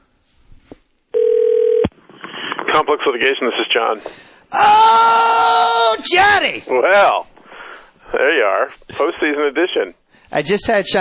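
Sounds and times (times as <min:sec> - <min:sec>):
telephone ringing as a call connects: 0:01.1 - 0:01.9
speech: 0:02.8 - 0:07.3, 0:08.1 - 0:10.9.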